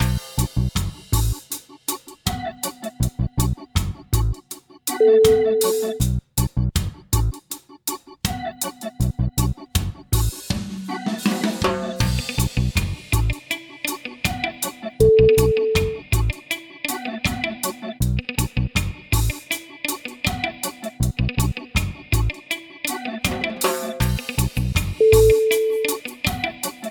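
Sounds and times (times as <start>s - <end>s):
reggae music: 0.0s - 26.8s.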